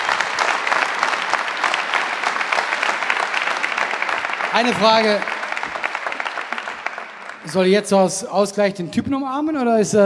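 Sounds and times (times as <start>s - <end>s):
applause for a birthday: 0.0s - 8.3s
speech: 4.6s - 5.8s, 7.4s - 10.0s.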